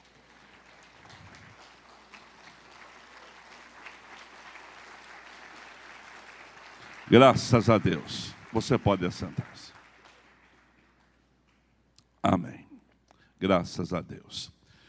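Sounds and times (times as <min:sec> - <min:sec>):
audience applause: 0:00.0 - 0:11.2
speech: 0:07.1 - 0:09.7, 0:13.4 - 0:14.6.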